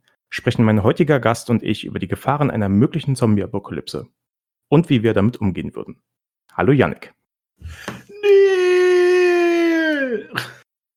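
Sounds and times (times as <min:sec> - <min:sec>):
speech: 0:00.4 - 0:08.0
short breathy sounds: 0:07.6 - 0:10.6
timid fake zombie-fear scream: 0:08.1 - 0:10.6.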